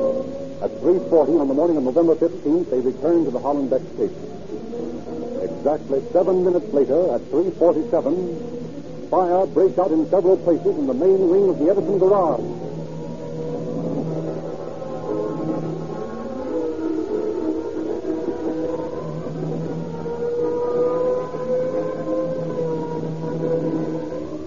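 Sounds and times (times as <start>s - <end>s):
speech: 0.6s - 4.4s, 5.6s - 8.5s, 9.1s - 12.6s
fire engine siren: 11.7s - 24.4s.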